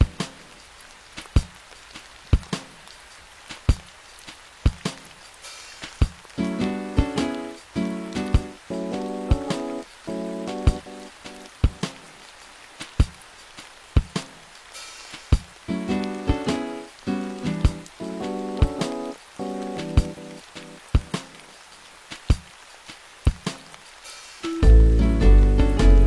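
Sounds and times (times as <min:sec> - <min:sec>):
rain drips and taps: 0:00.0 - 0:26.0
soft hiss: 0:00.0 - 0:26.0
music with a bright stepping melody: 0:06.4 - 0:11.1, 0:15.7 - 0:20.4, 0:24.4 - 0:26.0.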